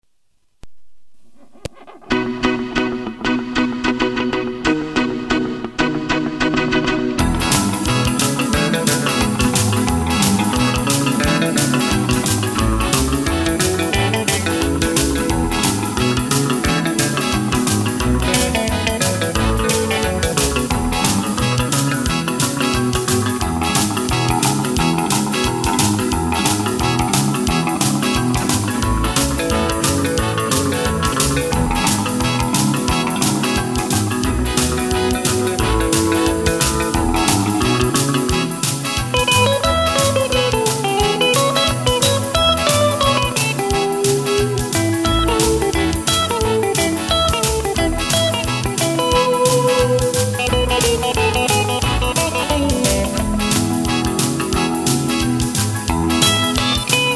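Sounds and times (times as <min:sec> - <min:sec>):
boogie guitar: 0:01.4 - 0:57.1.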